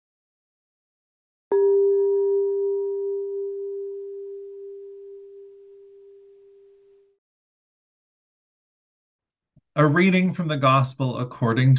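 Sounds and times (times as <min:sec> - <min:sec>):
single bell ringing with mid-pitched tone: 0:01.5 - 0:06.8
speech: 0:09.8 - 0:11.7.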